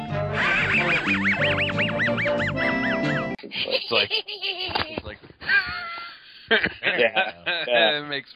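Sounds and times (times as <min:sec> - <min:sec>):
cartoon dog wheezing laugh sound effect: 0:00.3 - 0:04.8
speech: 0:01.1 - 0:04.8, 0:06.5 - 0:08.3.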